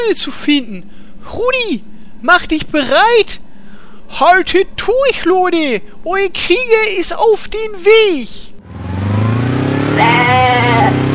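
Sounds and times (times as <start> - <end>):
steady low droning hum: 0.0 - 8.6
speech: 0.1 - 3.4, 4.1 - 8.5
goat bleating: 10.0 - 11.0.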